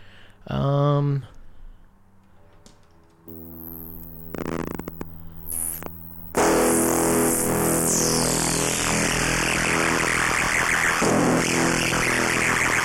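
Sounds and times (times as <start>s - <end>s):
heavy distortion effect on a synth patch: 3.3s - 12.8s.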